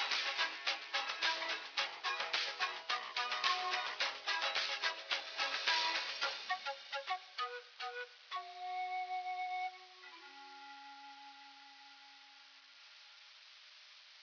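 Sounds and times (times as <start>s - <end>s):
looped song playing on radio: 0.0s - 8.8s.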